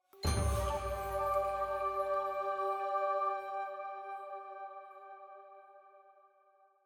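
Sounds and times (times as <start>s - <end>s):
flute in G: 0.0s - 6.4s
full choir singing a jingle: 0.2s - 5.9s.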